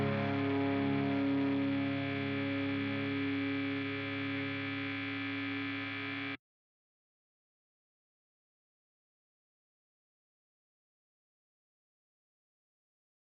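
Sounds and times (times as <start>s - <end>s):
guitars: 0.0s - 6.4s.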